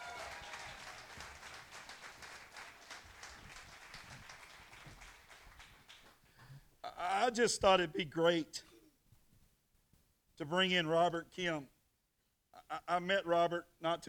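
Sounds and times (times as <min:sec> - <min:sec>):
audience applauding: 0:00.0 - 0:06.3
speech: 0:07.3 - 0:08.7, 0:10.4 - 0:11.8, 0:12.9 - 0:14.0.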